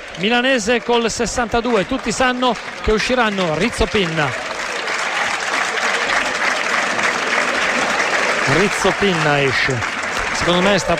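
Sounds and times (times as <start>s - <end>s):
stadium crowd applauding a substituted player: 0.0s - 10.9s
speech: 0.2s - 4.5s, 8.5s - 10.9s.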